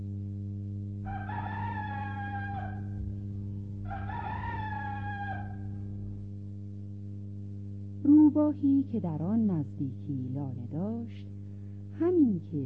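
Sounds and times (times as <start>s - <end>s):
steady low hum: 0.0s - 12.6s
rooster crowing: 1.0s - 3.1s, 3.8s - 6.0s
speech: 8.3s - 11.3s, 12.0s - 12.6s.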